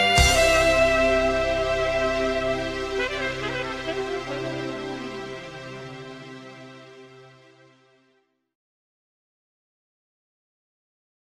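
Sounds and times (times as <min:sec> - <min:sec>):
instrumental music: 0:00.0 - 0:08.2.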